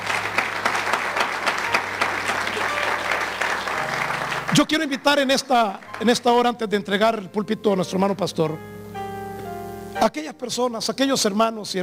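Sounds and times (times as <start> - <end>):
church congregation applauding during a sermon service: 0.0 - 6.7
speech: 4.5 - 8.8, 10.0 - 11.8.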